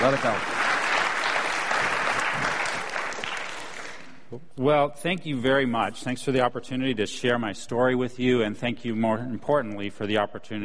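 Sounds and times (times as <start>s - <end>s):
speech: 0.0s - 0.6s, 4.3s - 10.6s
church audience applause welcoming a guest speaker: 0.0s - 4.2s.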